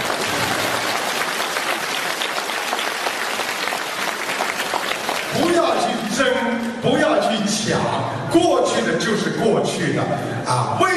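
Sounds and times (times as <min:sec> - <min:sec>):
crowd applauding: 0:00.0 - 0:06.0
speech: 0:06.6 - 0:10.9.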